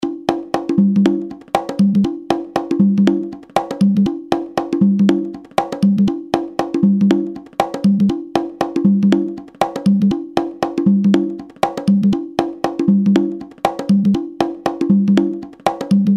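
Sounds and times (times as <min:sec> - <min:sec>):
congas: 0:00.0 - 0:16.1.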